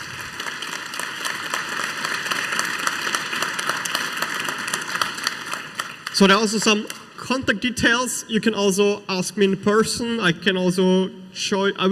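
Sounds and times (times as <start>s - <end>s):
audience applause: 0.0s - 7.2s
speech: 6.2s - 11.9s.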